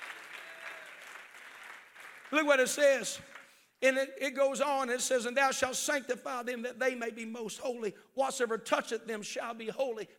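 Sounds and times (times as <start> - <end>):
audience clapping: 0.0 - 3.6
speech: 2.3 - 10.1.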